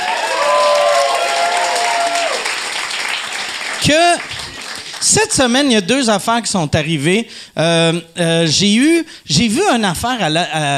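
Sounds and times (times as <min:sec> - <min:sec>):
applause: 0:00.0 - 0:05.5
speech: 0:03.8 - 0:04.3, 0:05.0 - 0:10.7.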